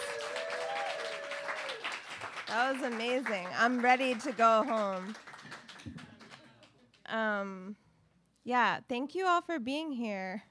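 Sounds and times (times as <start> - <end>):
audience applause: 0.0 - 6.7
speech: 2.5 - 6.0, 7.1 - 7.8, 8.4 - 10.5.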